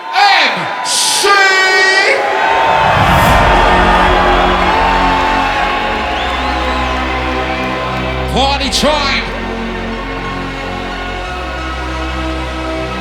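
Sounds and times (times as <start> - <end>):
shouts, whoops and whistles: 0.0 - 9.3
rave crowd cheering: 0.0 - 13.0
steady low rumble: 2.4 - 8.7
speech: 8.6 - 9.3.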